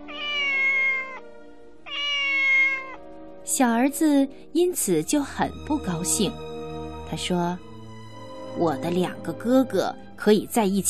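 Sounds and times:
cat meowing: 0.0s - 3.0s
speech: 3.6s - 6.5s, 7.1s - 7.7s, 8.6s - 10.8s.

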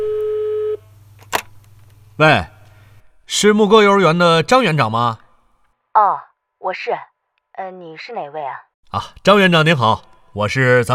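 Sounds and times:
phone ringing tone on speakerphone: 0.0s - 0.8s
speech: 2.2s - 2.5s, 3.3s - 5.2s, 6.0s - 10.9s.

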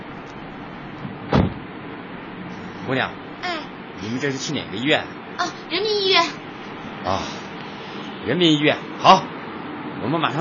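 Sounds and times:
car door closing: 1.3s - 1.6s
speech: 2.9s - 3.2s, 4.2s - 6.4s, 7.0s - 7.4s, 8.2s - 9.3s, 10.0s - 10.4s.

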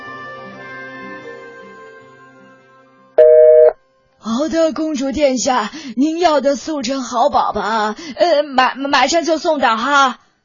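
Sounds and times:
harsh electronic tone of a glitching telephone line: 3.2s - 3.7s
speech: 4.4s - 10.2s.

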